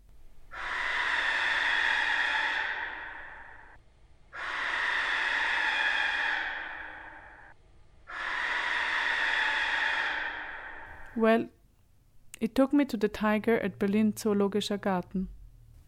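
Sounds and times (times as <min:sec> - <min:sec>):
slowed-down barn owl call: 0:00.5 - 0:11.3
speech: 0:11.2 - 0:11.6, 0:12.4 - 0:15.4.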